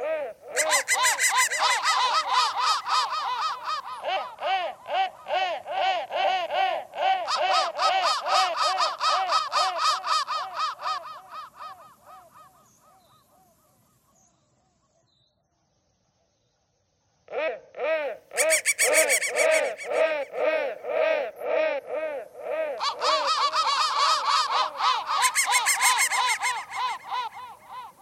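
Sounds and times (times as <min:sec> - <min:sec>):
crow cawing: 0:00.0 - 0:12.6, 0:18.4 - 0:28.0.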